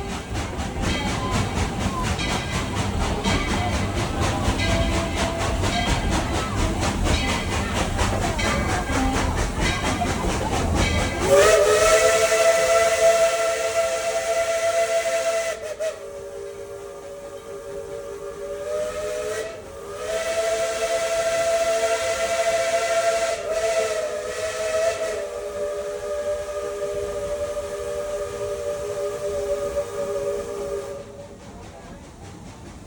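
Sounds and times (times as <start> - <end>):
steam train chugging: 0.0 - 32.8
steam train whistle: 11.2 - 31.2.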